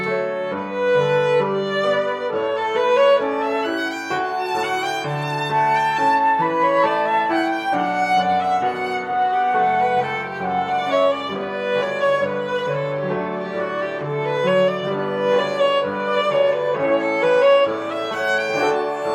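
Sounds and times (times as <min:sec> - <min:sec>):
flute: 0:00.0 - 0:12.6, 0:15.2 - 0:19.1
piano: 0:00.0 - 0:19.1
violin: 0:00.0 - 0:19.1.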